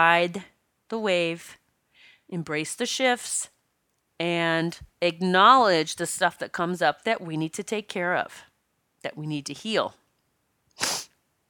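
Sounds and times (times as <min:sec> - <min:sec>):
speech: 0:00.0 - 0:01.6, 0:02.3 - 0:03.5, 0:04.2 - 0:10.0
sniffle through the nose: 0:10.8 - 0:11.2.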